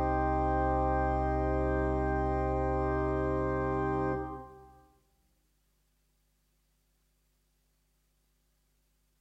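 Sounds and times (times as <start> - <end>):
voluntary played on a new organ: 0.0 - 4.9.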